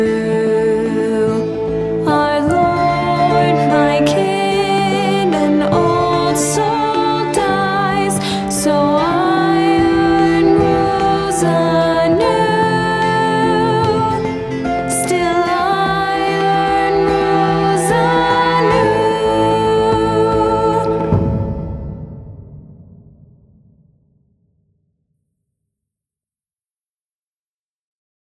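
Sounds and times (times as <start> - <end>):
funeral ballad: 0.0 - 22.1.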